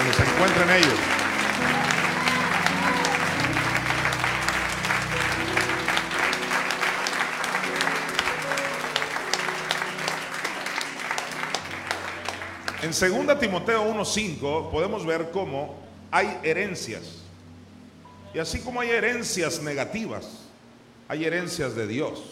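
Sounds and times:
audience clapping: 0:00.0 - 0:13.6
speech: 0:00.4 - 0:01.2, 0:12.9 - 0:17.2, 0:18.3 - 0:20.4, 0:21.1 - 0:22.3.

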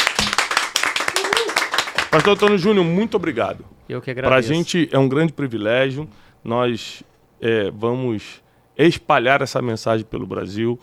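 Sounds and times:
audience clapping: 0:00.0 - 0:02.8
speech: 0:02.1 - 0:10.8.

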